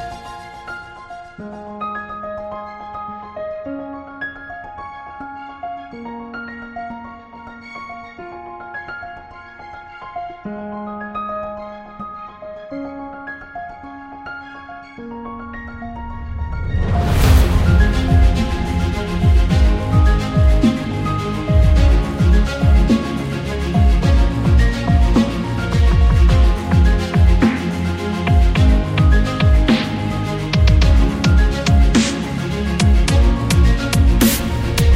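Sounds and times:
epic dubstep trailer music: 17.2s - 34.9s.

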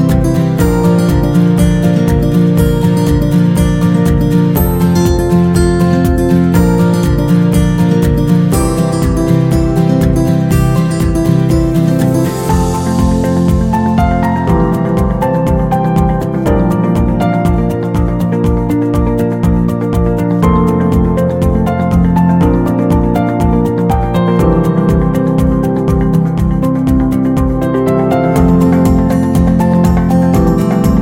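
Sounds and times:
upbeat corporate guitar music: 0.0s - 30.9s.

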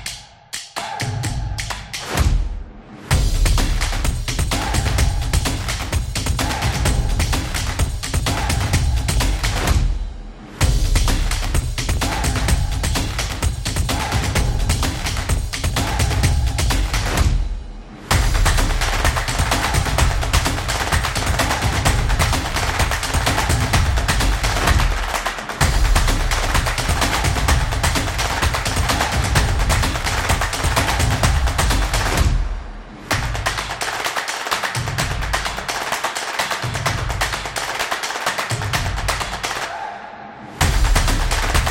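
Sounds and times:
drum beat: 1.0s - 39.6s, 40.6s - 41.6s.

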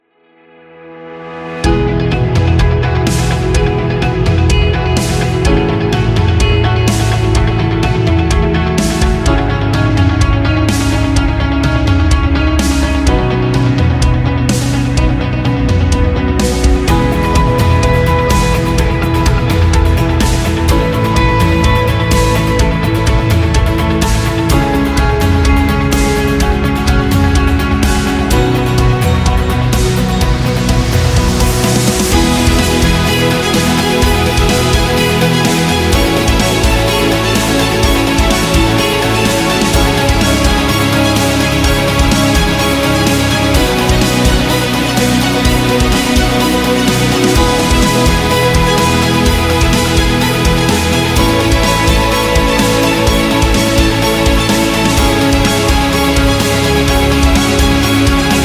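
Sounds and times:
energetic corporate music: 1.4s - 58.4s.

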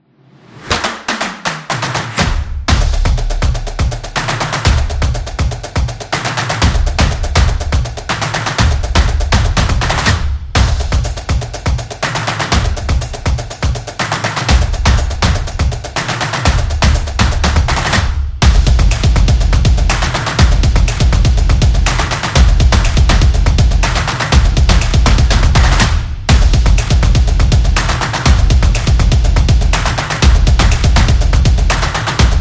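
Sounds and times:
samba drumming solo: 0.7s - 32.3s.

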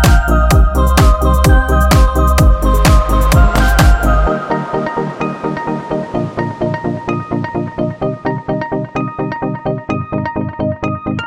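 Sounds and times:
simple upbeat positive corporate background music: 0.0s - 11.0s.

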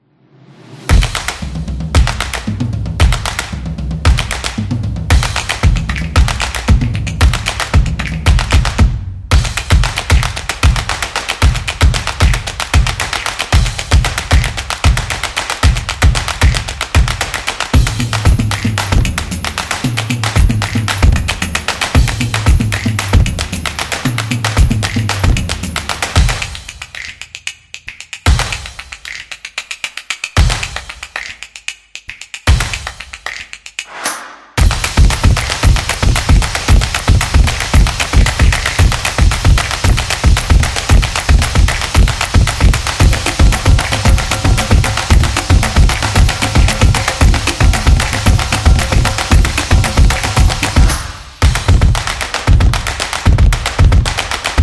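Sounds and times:
street percussion background music for sport and dance: 0.9s - 54.6s.

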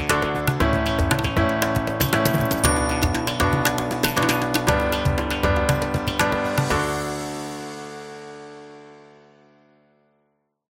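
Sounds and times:
Indian traditional music: 0.0s - 8.1s.

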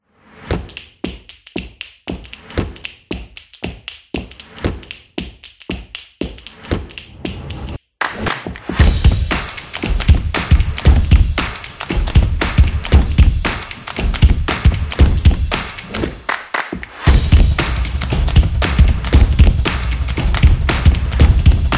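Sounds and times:
street percussion background music for sport and dance: 8.5s - 21.7s.

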